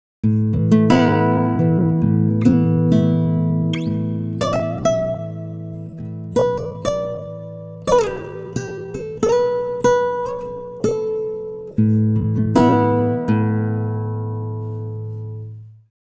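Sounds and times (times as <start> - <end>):
time-stretched guitar: 0.2 - 15.8.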